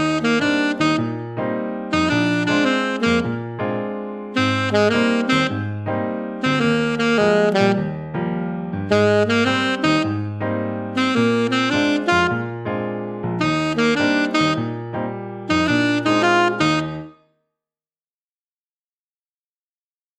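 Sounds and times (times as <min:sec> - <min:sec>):
alto saxophone etude: 0:00.0 - 0:08.1, 0:08.9 - 0:12.7, 0:13.4 - 0:17.2.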